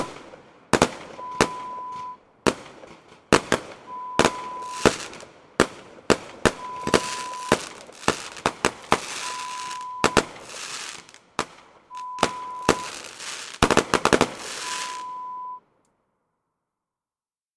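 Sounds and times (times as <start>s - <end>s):
fireworks: 0.0s - 15.2s.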